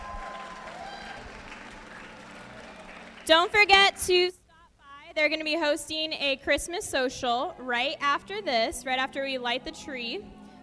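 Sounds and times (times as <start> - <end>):
audience applause: 0.0 - 3.3
speech: 3.3 - 4.4, 5.2 - 10.4.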